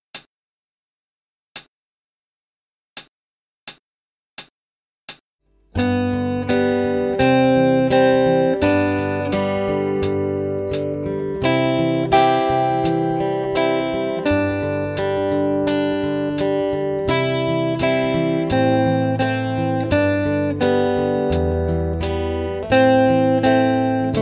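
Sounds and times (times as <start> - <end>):
guitar played fast on 3 strings: 5.8 - 24.2.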